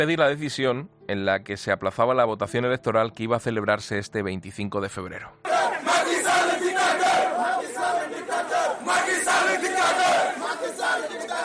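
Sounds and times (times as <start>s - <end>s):
speech: 0.0s - 5.4s
protesting crowd chanting: 5.4s - 11.4s.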